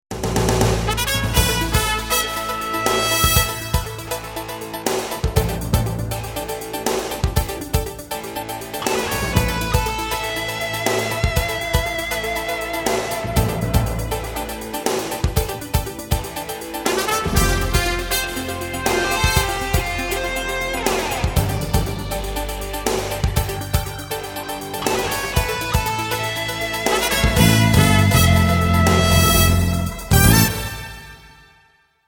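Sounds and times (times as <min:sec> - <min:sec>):
instrumental jingle: 0:00.9 - 0:31.6.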